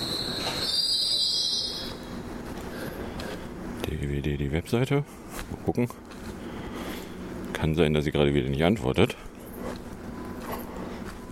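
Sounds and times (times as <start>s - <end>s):
train wheels squealing: 0.0s - 2.2s
speech: 3.9s - 6.1s, 7.6s - 9.3s.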